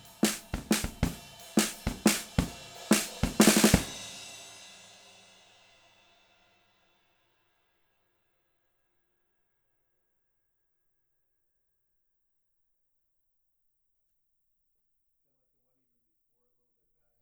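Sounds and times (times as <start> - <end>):
snare drum recorded with a PGA98: 0.0 - 4.3.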